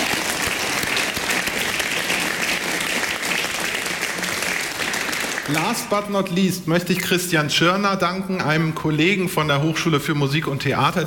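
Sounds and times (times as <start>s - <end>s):
audience applause: 0.0s - 6.2s
speech: 5.5s - 11.0s.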